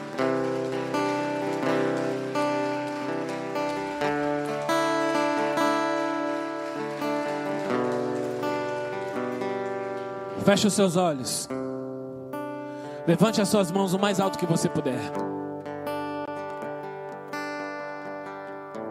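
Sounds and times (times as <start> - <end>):
audience clapping: 0.0 - 11.0
loud sustained organ-like music chords: 0.0 - 18.7
speech: 10.5 - 11.6, 13.1 - 15.3.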